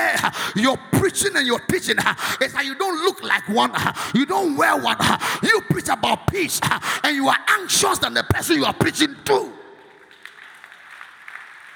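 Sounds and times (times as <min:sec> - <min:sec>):
speech: 0:00.2 - 0:09.6
audience clapping: 0:09.3 - 0:11.7.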